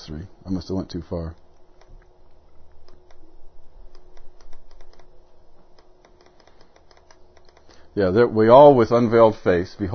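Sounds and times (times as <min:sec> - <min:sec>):
steady low hum: 0:00.0 - 0:09.9
speech: 0:00.1 - 0:01.4, 0:08.0 - 0:09.9
computer keyboard typing: 0:01.4 - 0:03.2, 0:03.8 - 0:07.8.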